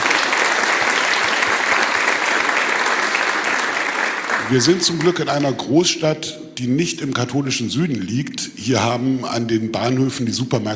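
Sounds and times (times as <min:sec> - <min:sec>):
applause: 0:00.0 - 0:05.4
speech: 0:04.5 - 0:10.7.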